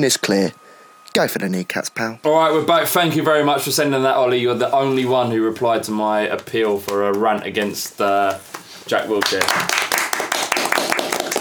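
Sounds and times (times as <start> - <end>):
speech: 0.0 - 9.8
old-fashioned style applause: 9.2 - 11.3.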